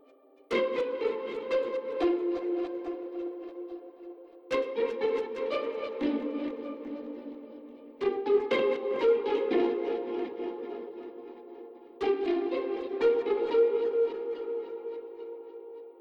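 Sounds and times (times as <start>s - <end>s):
pizzicato strings: 0.0s - 3.8s, 4.5s - 15.8s.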